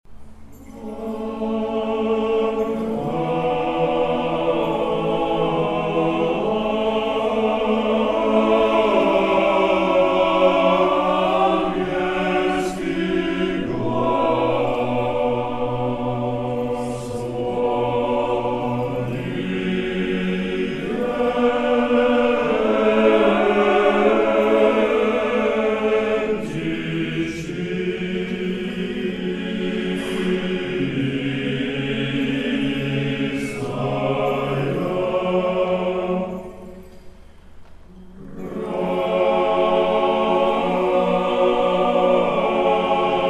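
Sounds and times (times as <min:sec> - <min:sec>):
choir singing: 0:00.3 - 0:43.2.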